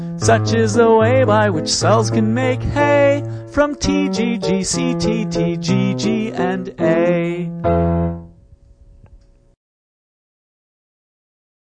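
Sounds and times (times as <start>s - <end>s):
waltz music: 0.0s - 8.3s.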